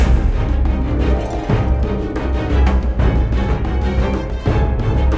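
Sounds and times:
tense music sting: 0.1s - 5.1s.

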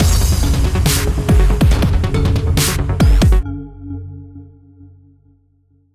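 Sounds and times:
industrial action music: 0.0s - 3.5s.

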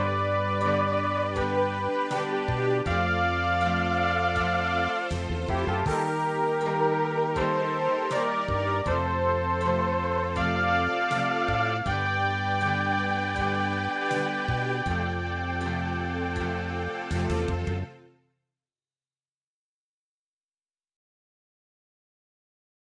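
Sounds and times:
MIDI music: 0.0s - 18.2s.

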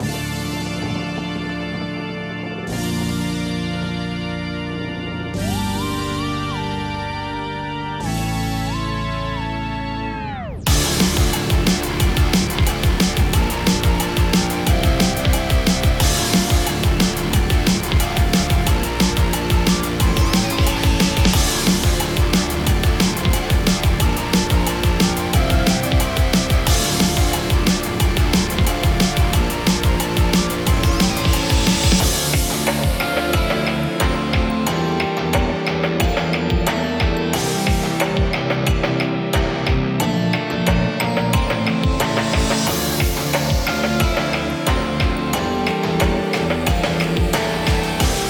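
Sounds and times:
spooky instrumental music mix: 0.0s - 48.2s.

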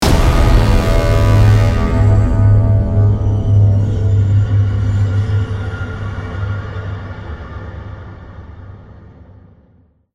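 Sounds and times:
snow music stinger: 0.0s - 7.2s.

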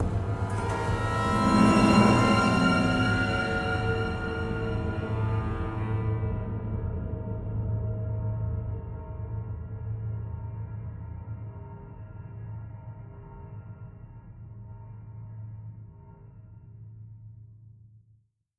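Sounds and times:
music: 0.0s - 18.0s.

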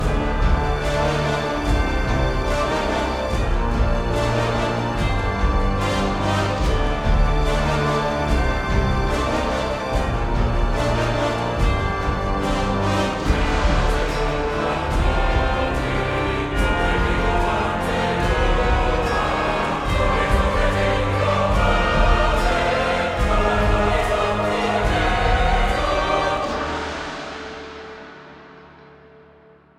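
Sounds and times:
boss fight music loop: 0.0s - 27.1s.

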